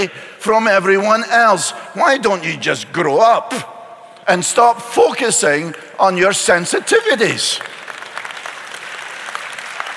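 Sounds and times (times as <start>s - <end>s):
speech: 0.0s - 3.7s, 4.3s - 7.8s
audience clapping during a spoken talk: 5.6s - 9.9s.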